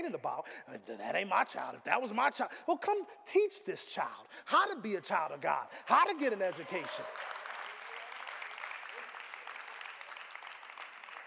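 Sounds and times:
speech: 0.1 - 7.4
audience applause: 5.9 - 11.2.

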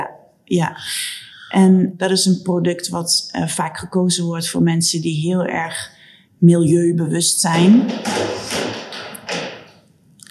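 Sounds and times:
speech: 0.0 - 8.7
wind knocking on wooden structure: 7.8 - 9.8.

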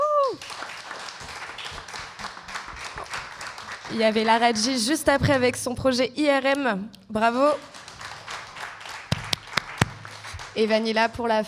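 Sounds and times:
audience applause for a performer at a live show: 0.3 - 4.6, 7.7 - 10.8
speech: 3.9 - 7.7, 10.6 - 11.4.

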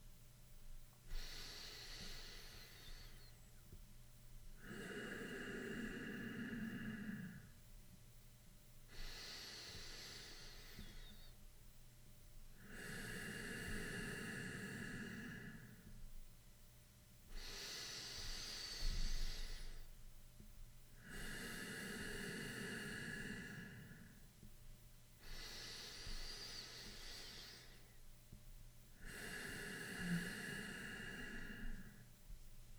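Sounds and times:
slow deep breathing during a guided breathing exercise: 1.1 - 3.5, 4.5 - 7.7, 8.9 - 11.5, 12.6 - 16.1, 17.3 - 20.0, 21.0 - 24.5, 25.2 - 28.0, 29.0 - 32.3.

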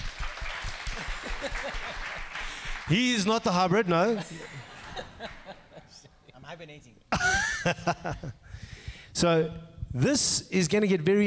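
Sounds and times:
round of applause: 0.0 - 3.6
laughter: 0.8 - 2.7, 4.0 - 6.4, 7.1 - 8.4
speech: 1.4 - 5.4, 6.5 - 8.4, 9.2 - 11.2.

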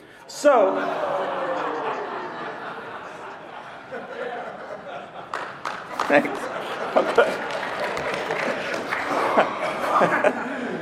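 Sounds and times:
speech: 0.3 - 2.0, 6.1 - 7.4
laughter: 0.5 - 10.8
audience clapping: 4.9 - 9.8.

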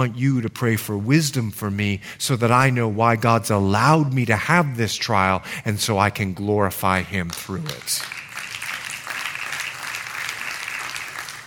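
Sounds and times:
speech: 0.0 - 8.2
few people clapping: 7.2 - 11.4.

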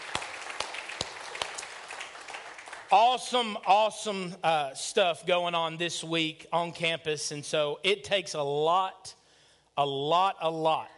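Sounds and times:
audience hand clapping: 0.0 - 3.8
speech: 2.9 - 9.2, 9.8 - 10.9.

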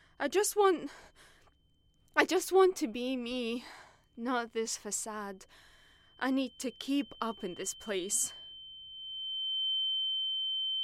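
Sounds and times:
speech: 0.2 - 1.2, 2.2 - 8.4
steady high-pitched pure tone: 5.8 - 10.8.

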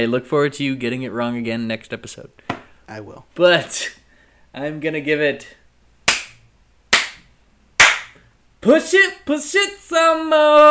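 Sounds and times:
speech: 0.0 - 5.6, 8.6 - 10.6
hand slaps: 6.0 - 8.2.

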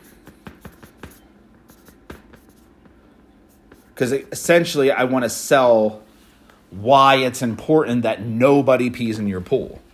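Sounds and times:
handwriting notes with scratchy strokes: 0.0 - 4.0
speech: 4.0 - 6.0, 6.8 - 9.8.

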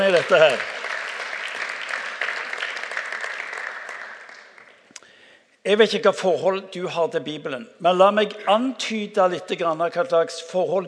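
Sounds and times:
speech: 0.0 - 0.8, 5.6 - 10.8
audience applause: 0.0 - 4.8.

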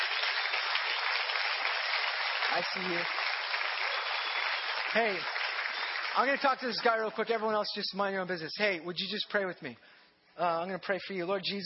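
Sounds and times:
audience applause: 0.0 - 7.0
speech: 2.6 - 3.2, 4.9 - 5.4, 6.1 - 11.6.

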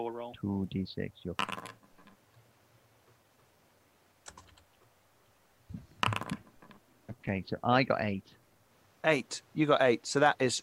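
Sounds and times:
speech: 0.0 - 1.7, 7.3 - 8.4, 9.0 - 10.6
computer keyboard keystrokes typing a dice roll command: 4.2 - 4.6.

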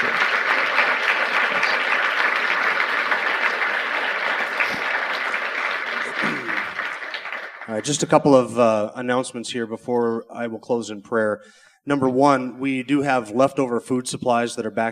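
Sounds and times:
audience applause: 0.0 - 8.5
speech: 7.7 - 14.9.

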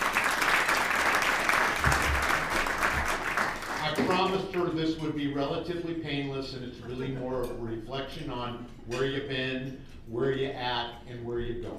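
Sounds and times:
audience applause: 0.0 - 4.1
speech: 4.2 - 11.7.

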